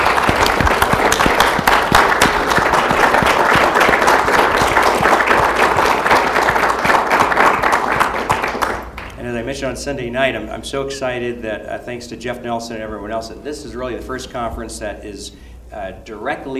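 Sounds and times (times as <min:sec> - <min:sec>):
audience applause: 0:00.0 - 0:09.2
speech: 0:09.6 - 0:16.5.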